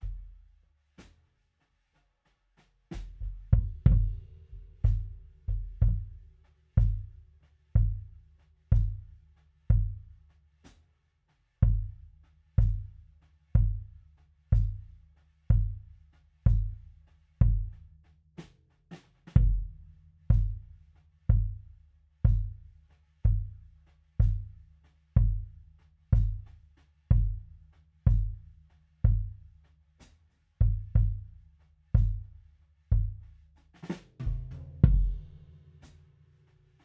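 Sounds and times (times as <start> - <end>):
kick drum: 3.0 - 10.2, 11.6 - 18.0, 19.3 - 29.6, 30.6 - 33.5, 34.2 - 35.5.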